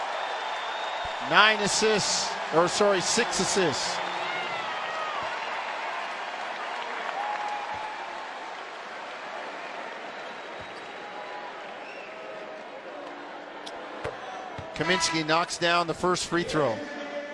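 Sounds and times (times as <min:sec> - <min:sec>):
large arena crowd applauding and cheering: 0:00.0 - 0:13.0
speech: 0:01.2 - 0:04.1, 0:14.8 - 0:17.0.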